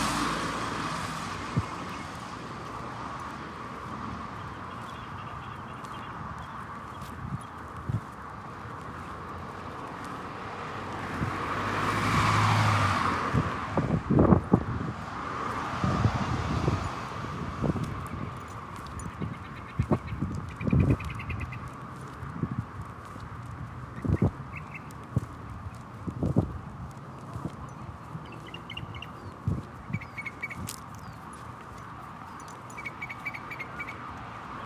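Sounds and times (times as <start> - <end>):
car passing in Central Phoenix: 0.0 - 34.6
street hum: 0.0 - 34.6
footsteps: 0.1 - 11.4, 17.6 - 32.8
birds chirping in Phoenix: 1.1 - 7.8, 18.1 - 22.2, 23.7 - 26.0, 27.0 - 34.6.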